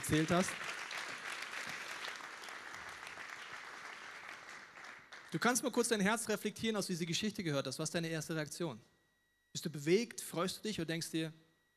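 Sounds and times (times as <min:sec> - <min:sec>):
audience applause: 0:00.0 - 0:05.3
speech: 0:00.1 - 0:00.8, 0:05.3 - 0:08.9, 0:09.5 - 0:11.4.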